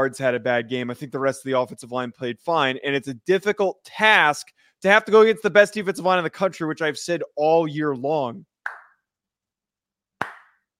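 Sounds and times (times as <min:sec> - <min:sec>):
speech: 0:00.0 - 0:08.5
clapping: 0:10.2 - 0:10.6.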